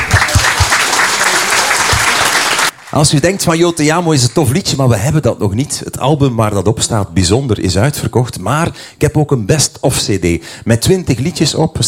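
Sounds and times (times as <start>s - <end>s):
applause: 0.0s - 4.4s
speech: 2.9s - 11.8s.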